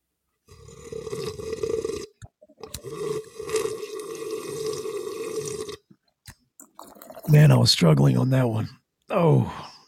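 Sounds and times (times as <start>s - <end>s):
sipping a cup of coffee: 0.6s - 7.5s
speech: 7.3s - 9.6s.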